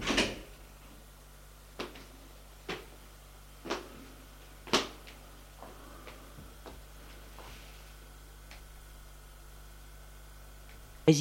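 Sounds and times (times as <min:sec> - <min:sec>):
door closing: 0:00.0 - 0:00.5.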